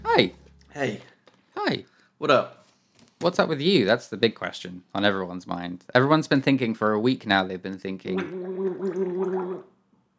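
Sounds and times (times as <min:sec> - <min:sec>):
speech: 0:00.2 - 0:02.6, 0:03.2 - 0:09.7
person gargling water: 0:08.2 - 0:09.7.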